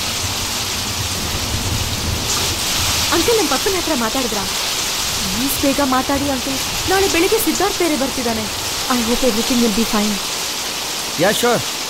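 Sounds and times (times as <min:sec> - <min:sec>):
heavy rain in Madikeri: 0:00.0 - 0:11.8
speech: 0:03.2 - 0:04.6, 0:05.2 - 0:10.3, 0:11.2 - 0:11.8.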